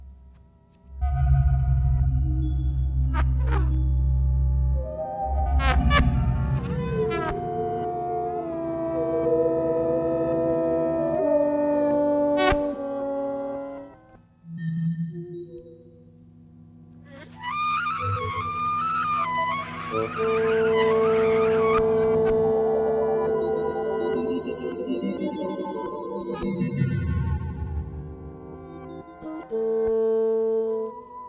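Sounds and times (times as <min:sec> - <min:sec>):
bassoon playing an etude: 0:01.0 - 0:14.2, 0:17.1 - 0:31.2
trumpet playing an etude: 0:04.8 - 0:14.2, 0:17.1 - 0:25.9, 0:27.0 - 0:31.2.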